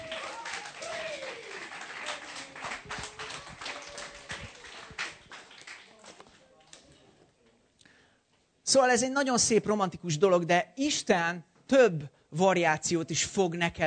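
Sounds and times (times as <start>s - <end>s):
audience applause: 0.0s - 6.2s
speech: 8.7s - 13.8s.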